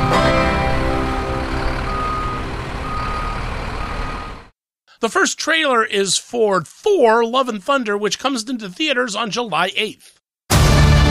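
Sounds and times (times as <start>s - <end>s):
truck engine rumbling: 0.0s - 4.5s
truck reversing alarm beeping: 1.2s - 4.5s
speech: 5.0s - 10.2s.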